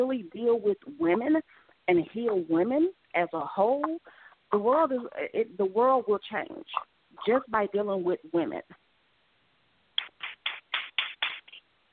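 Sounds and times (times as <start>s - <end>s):
speech: 0.0s - 8.8s
person clapping: 10.0s - 11.6s.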